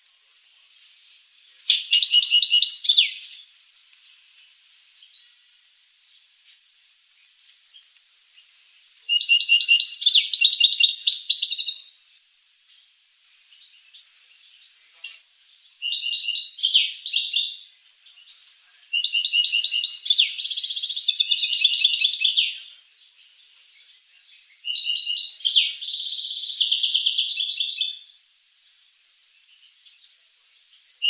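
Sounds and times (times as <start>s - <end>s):
finch singing: 1.4s - 3.4s, 8.9s - 11.9s, 13.5s - 28.8s, 29.5s - 31.0s.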